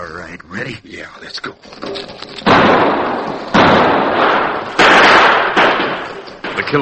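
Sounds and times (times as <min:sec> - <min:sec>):
speech: 0:00.2 - 0:04.8, 0:06.6 - 0:06.8
shotgun and revolver gunfire: 0:02.3 - 0:06.8.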